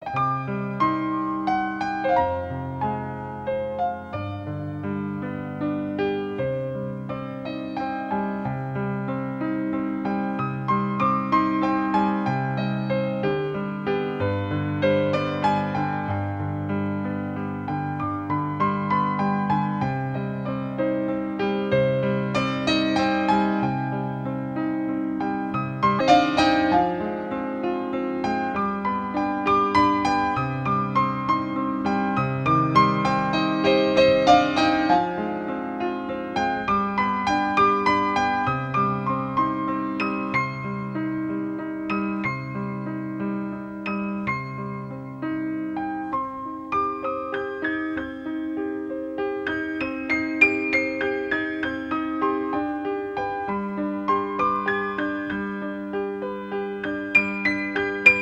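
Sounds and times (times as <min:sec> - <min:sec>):
solo piano: 0:00.0 - 0:58.2.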